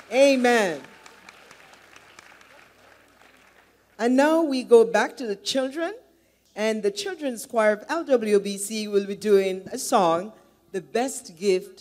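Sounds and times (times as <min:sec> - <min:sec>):
audience applause: 0:00.0 - 0:04.0
speech: 0:00.1 - 0:00.9, 0:04.0 - 0:06.0, 0:06.6 - 0:11.7.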